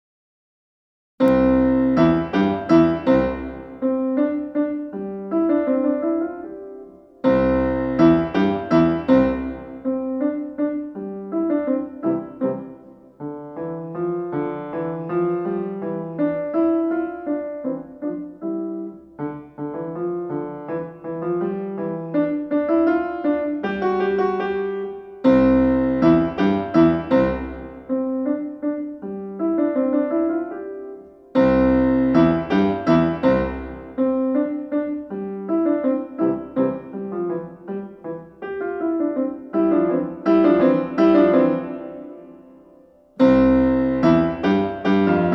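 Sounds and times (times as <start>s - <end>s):
piano sonatina allegro: 1.2s - 45.3s.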